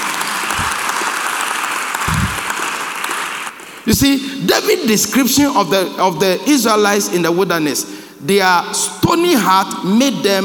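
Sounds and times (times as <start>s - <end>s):
audience applause: 0.0s - 4.0s
speech: 3.9s - 10.4s.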